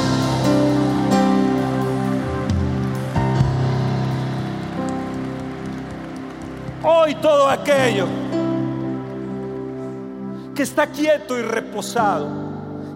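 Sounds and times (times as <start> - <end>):
loud applause from audience: 0.0 - 9.8
speech: 7.2 - 8.4, 10.6 - 12.4.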